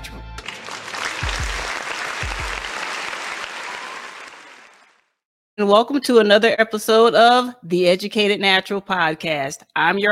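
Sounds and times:
audience applauding to welcome a podcast host: 0:00.4 - 0:05.2
speech: 0:05.6 - 0:10.1.

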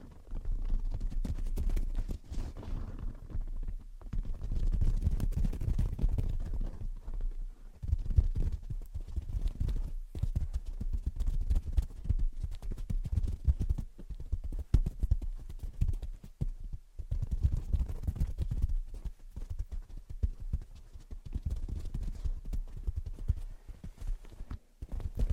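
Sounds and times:
gentle tapping and scratching: 0:00.0 - 0:25.3.

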